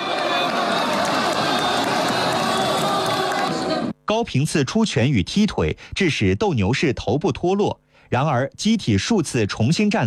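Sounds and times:
large crowd cheering and shouting: 0.0s - 3.9s
scattered clapping: 0.0s - 3.9s
speech: 4.1s - 10.0s.

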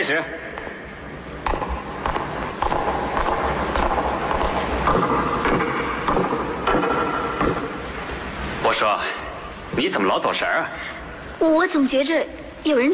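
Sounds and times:
speech: 0.0s - 0.5s, 8.8s - 9.2s, 9.8s - 12.9s
footsteps recorded as a sound effect: 1.4s - 8.3s.

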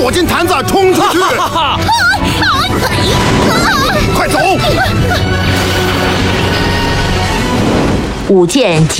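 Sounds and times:
speech: 0.1s - 5.7s, 8.3s - 8.9s
laughter: 0.7s - 6.8s
explosion blast: 2.4s - 8.5s.

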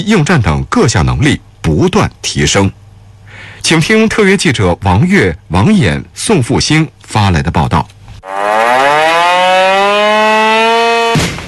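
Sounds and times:
speech: 0.0s - 2.8s, 3.6s - 8.0s
urgent military alarm siren: 8.2s - 11.2s.

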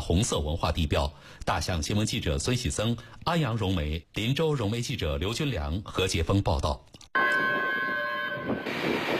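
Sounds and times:
speech: 0.1s - 7.0s
long train horn as Hongqiqu red tourism train pulls in: 7.2s - 9.1s.

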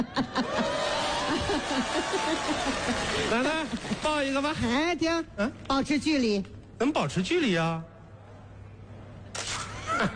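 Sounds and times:
speech: 0.0s - 0.5s, 1.5s - 7.9s, 10.0s - 10.1s
laughter: 0.0s - 4.2s, 9.6s - 10.1s
camera shutter snap taking a photo: 9.3s - 9.8s.

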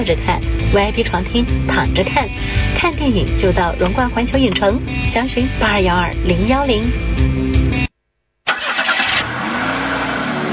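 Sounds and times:
speech: 0.0s - 7.5s
car engine starting and revving: 8.5s - 10.5s.

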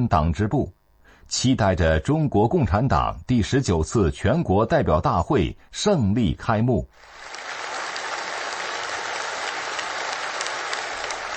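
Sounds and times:
speech: 0.0s - 7.4s
warm applause in a meeting room: 7.0s - 11.3s.

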